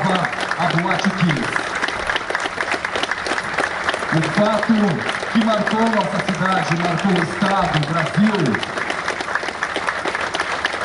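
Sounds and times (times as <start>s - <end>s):
crowd applause: 0.0s - 10.8s
speech: 0.7s - 1.7s, 4.1s - 8.8s.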